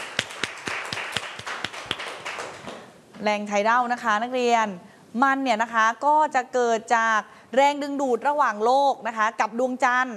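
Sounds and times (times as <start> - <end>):
classroom applause: 0.0 - 2.9
speech: 3.2 - 10.1.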